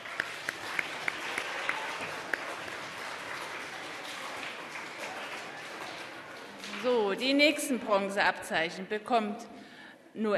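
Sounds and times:
audience applause: 0:00.0 - 0:07.2
speech: 0:06.8 - 0:09.6, 0:10.2 - 0:10.3.

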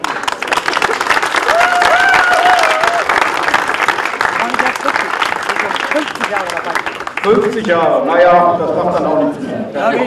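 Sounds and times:
audience applause: 0:00.0 - 0:08.0
speech: 0:06.3 - 0:10.0.

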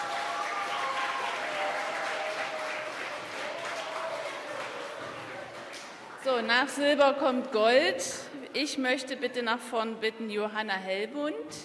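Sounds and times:
audience applause: 0:00.0 - 0:06.2
speech: 0:06.2 - 0:11.6.

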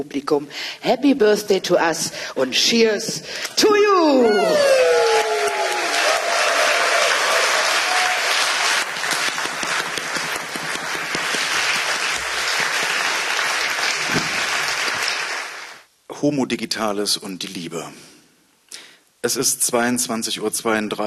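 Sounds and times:
speech: 0:00.0 - 0:05.0, 0:16.2 - 0:18.2, 0:19.2 - 0:21.0
audience applause: 0:04.3 - 0:15.8.

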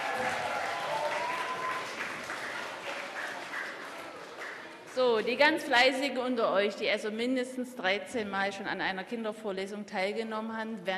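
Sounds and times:
audience applause: 0:00.0 - 0:05.0
speech: 0:05.0 - 0:10.9.

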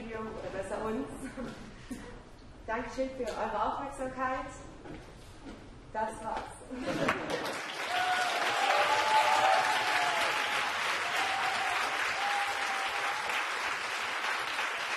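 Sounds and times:
speech: 0:00.9 - 0:02.0, 0:02.7 - 0:07.7
laughter: 0:06.7 - 0:07.7
audience applause: 0:07.0 - 0:14.9.

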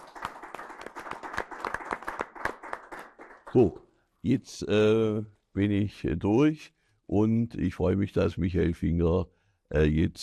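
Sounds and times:
audience applause: 0:00.0 - 0:03.6
speech: 0:03.5 - 0:10.2.

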